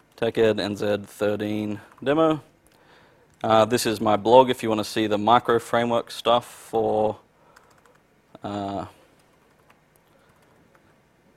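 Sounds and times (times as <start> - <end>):
speech: 0.2 - 2.5, 3.4 - 7.2, 8.4 - 9.0
typing on a computer keyboard during a live software demo: 7.6 - 8.0, 9.2 - 10.9.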